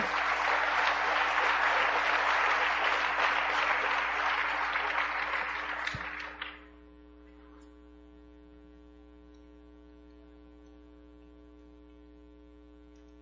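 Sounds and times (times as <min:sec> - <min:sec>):
crowd applauding: 0:00.0 - 0:06.7.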